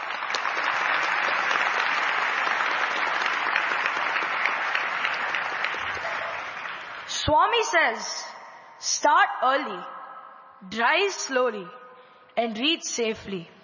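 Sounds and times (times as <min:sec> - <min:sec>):
audience applause: 0:00.0 - 0:07.1
speech: 0:07.2 - 0:10.0, 0:10.6 - 0:11.8, 0:12.4 - 0:13.6.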